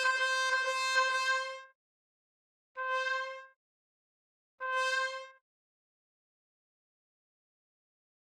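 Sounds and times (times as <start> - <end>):
trumpet: 0.0 - 1.6, 2.8 - 3.4, 4.6 - 5.4.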